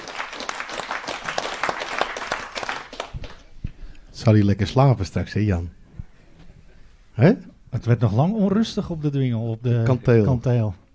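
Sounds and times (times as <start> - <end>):
audience applause: 0.0 - 3.5
speech: 4.2 - 5.8, 7.2 - 10.8.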